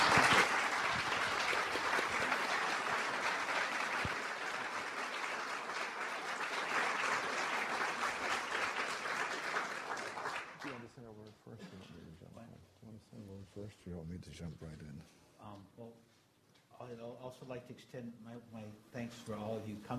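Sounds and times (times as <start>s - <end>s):
audience applause welcoming two speakers at a talk on American Buddhism: 0.0s - 11.0s
speech: 17.6s - 19.9s.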